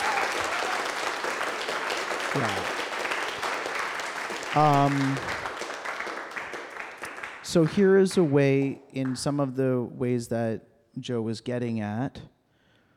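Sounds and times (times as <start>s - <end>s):
audience round of applause: 0.0s - 8.3s
speech: 2.3s - 2.8s, 4.5s - 5.4s, 7.5s - 12.4s.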